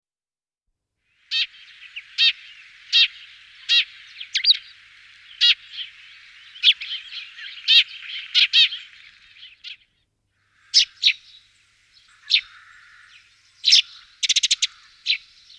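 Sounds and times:
Eurasian tree sparrow chirps: 1.3s - 9.8s, 10.5s - 15.5s.

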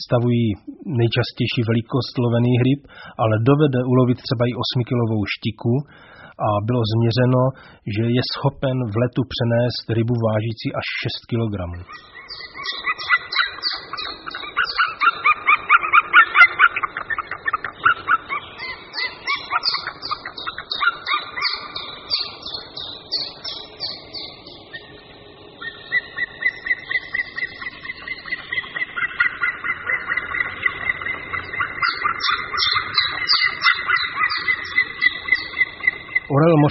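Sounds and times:
speech: 0.0s - 13.1s, 36.4s - 36.7s
continuous harmonic tone: 0.0s - 36.7s
white-tailed eagle yelping calls: 11.8s - 36.7s.

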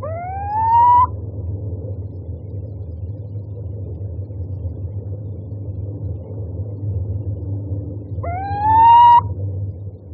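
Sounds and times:
little owl rising whistled hoots: 0.0s - 1.1s, 8.2s - 9.3s.

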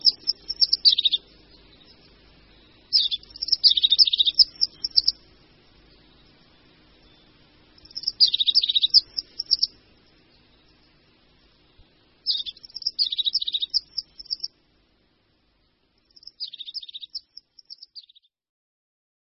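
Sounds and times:
crested tit trilled phrases: 0.0s - 10.9s, 12.2s - 14.6s.

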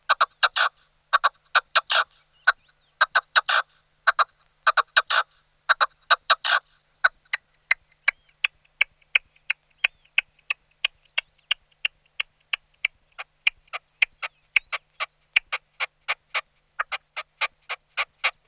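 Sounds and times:
red-legged partridge Alectoris rufa calling: 0.0s - 18.4s.

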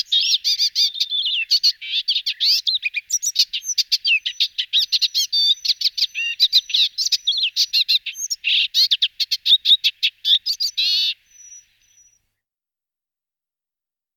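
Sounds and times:
Eastern olivaceous warbler song: 0.0s - 12.5s.

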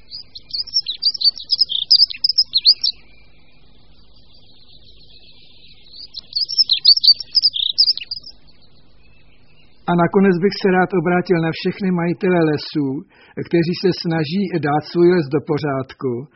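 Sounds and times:
dunnock warbling: 0.0s - 11.8s
speech: 9.9s - 16.3s.

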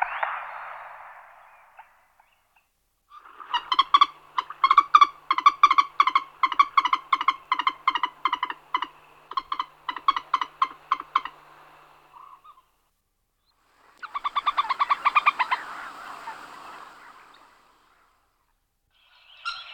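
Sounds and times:
Common moorhen Gallinula chloropus calling: 2.2s - 12.8s, 13.9s - 18.2s, 19.0s - 19.7s.

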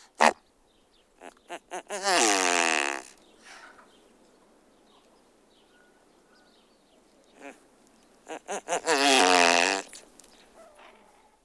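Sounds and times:
great bustard calls: 1.2s - 3.2s, 8.2s - 10.1s.

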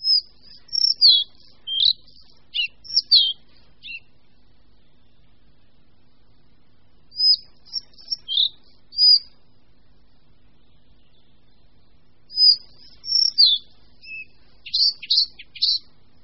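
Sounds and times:
Collared flycatcher song: 0.0s - 4.2s, 7.1s - 9.4s, 12.3s - 15.9s.

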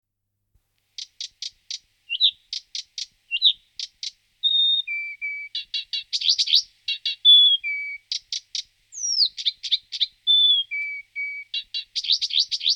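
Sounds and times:
Blyth's reed warbler Acrocephalus dumetorum singing: 1.0s - 12.7s.

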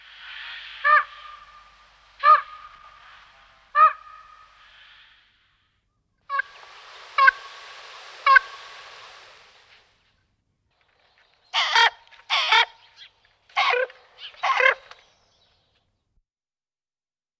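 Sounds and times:
common raven Corvus corax calling: 0.0s - 5.4s, 11.5s - 14.9s.

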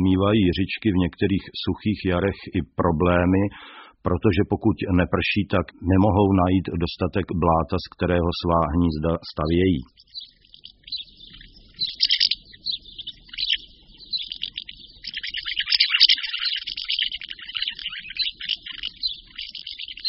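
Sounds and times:
speech: 0.0s - 10.2s
house sparrow chirping: 8.6s - 20.0s.

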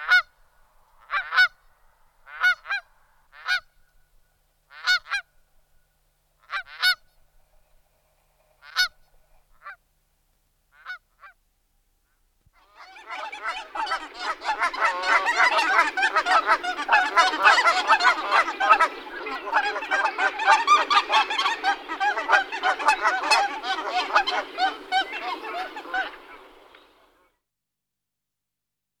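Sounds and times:
Canada goose Branta canadensis honking: 2.3s - 3.7s, 4.7s - 5.3s, 6.4s - 7.0s, 12.6s - 27.0s.

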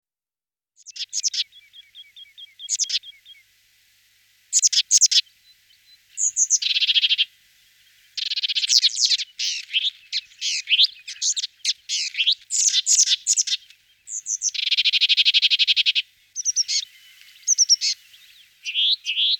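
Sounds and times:
Sombre tit (Parus lugubris) calls: 0.8s - 3.4s, 4.5s - 5.2s, 6.1s - 7.3s, 8.0s - 19.3s.

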